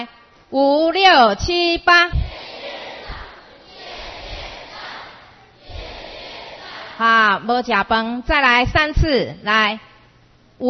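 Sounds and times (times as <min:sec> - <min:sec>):
speech: 0:00.0 - 0:02.2, 0:07.0 - 0:09.9
crowd noise: 0:02.1 - 0:07.2
children cheering together: 0:02.3 - 0:05.1, 0:05.7 - 0:07.0.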